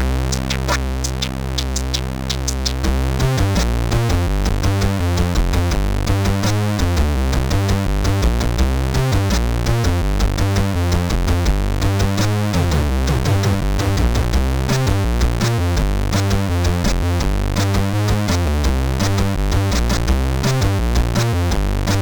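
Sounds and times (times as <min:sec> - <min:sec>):
CSG8580R5 sound chip beat: 0:00.0 - 0:22.0.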